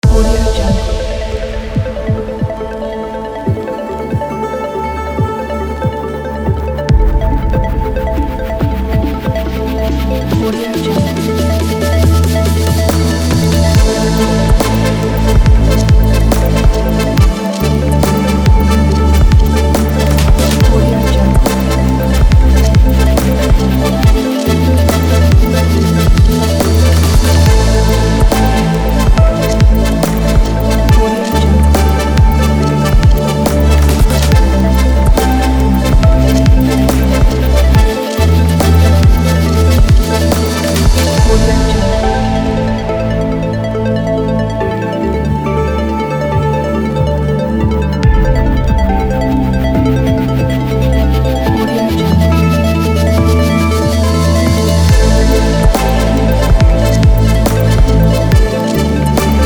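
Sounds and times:
ambient electronic music: 0.0 - 59.4.

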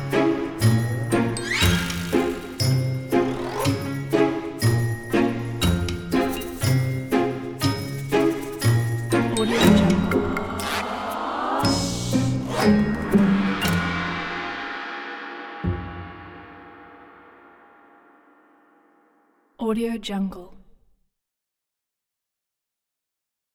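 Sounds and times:
sneaking Christmas comedy detective music: 0.0 - 17.0.

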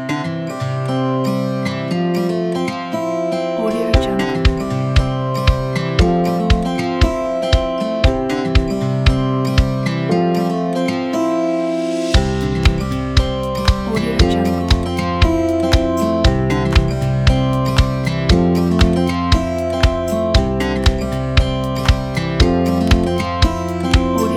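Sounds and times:
acoustic folk music: 0.0 - 24.3.

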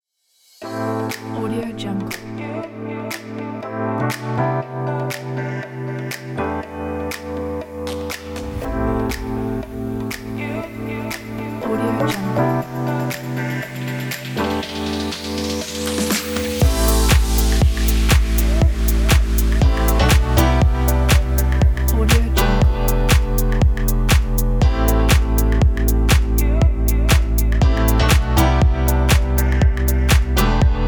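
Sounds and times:
fashion lounge house music: 0.6 - 30.8.

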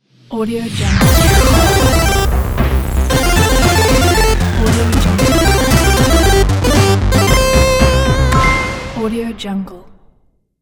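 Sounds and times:
8-bit logo sting: 1.0 - 9.0.

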